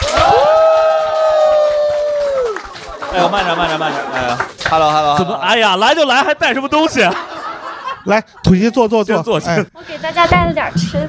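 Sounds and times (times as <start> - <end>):
audience applause and cheering: 0.0 - 5.7
laughter: 2.7 - 10.1
speech: 3.2 - 7.3, 8.0 - 11.0.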